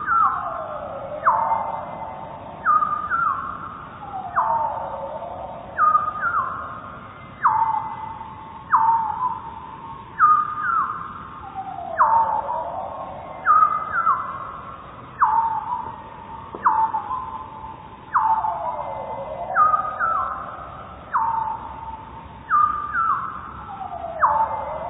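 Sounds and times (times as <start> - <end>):
song thrush singing in the background: 0.0 - 24.8.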